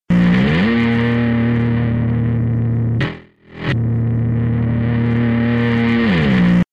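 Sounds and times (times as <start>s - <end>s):
bassline: 0.1s - 6.7s.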